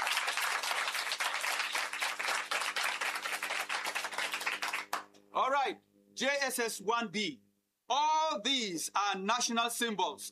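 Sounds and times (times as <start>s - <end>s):
audience applause: 0.0s - 5.0s
speech: 5.4s - 10.3s.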